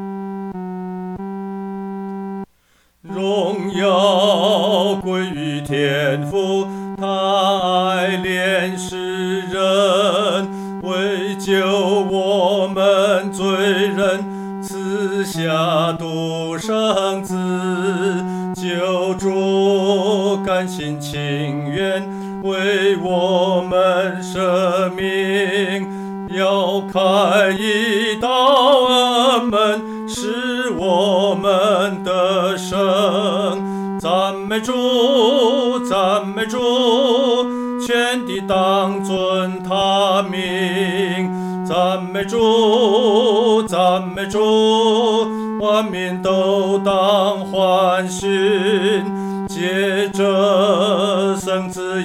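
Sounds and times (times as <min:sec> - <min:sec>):
solo singing third voice: 0:03.0 - 0:52.0.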